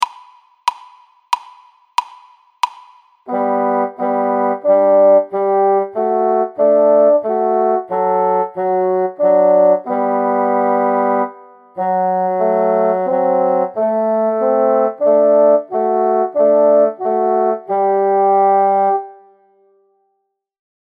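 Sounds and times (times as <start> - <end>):
bassoon duet: 3.3 - 19.5.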